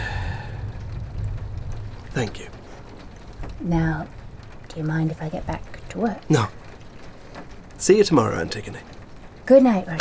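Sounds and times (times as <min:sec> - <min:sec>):
deep continuous rumble: 0:00.0 - 0:07.8
storm rain: 0:00.0 - 0:09.9
speech: 0:02.2 - 0:02.6, 0:03.5 - 0:06.6, 0:07.8 - 0:08.9, 0:09.5 - 0:09.9.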